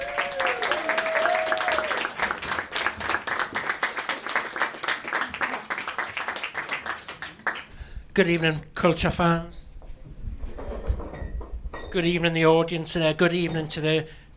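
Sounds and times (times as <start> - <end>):
audience applause at a live comedy show: 0.0 - 7.7
speech: 8.2 - 9.6, 11.9 - 14.2.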